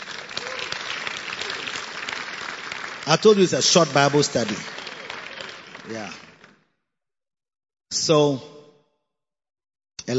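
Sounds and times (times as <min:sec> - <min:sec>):
audience clapping: 0:00.0 - 0:06.6
speech: 0:03.1 - 0:04.8, 0:05.9 - 0:06.2, 0:08.0 - 0:08.5.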